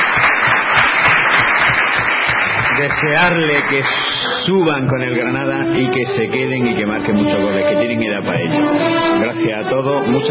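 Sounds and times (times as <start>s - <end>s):
audience applause: 0.0s - 5.1s
speech: 2.8s - 10.2s.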